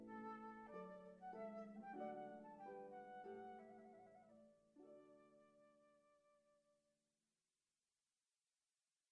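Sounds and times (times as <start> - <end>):
harp: 0.0 - 6.6
flute: 0.0 - 6.8.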